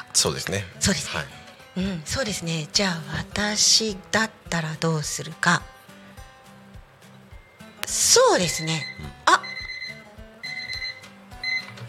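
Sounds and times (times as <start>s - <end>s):
speech: 0.2s - 5.7s, 8.2s - 9.2s
electronic timer alarm beeping: 7.8s - 11.8s.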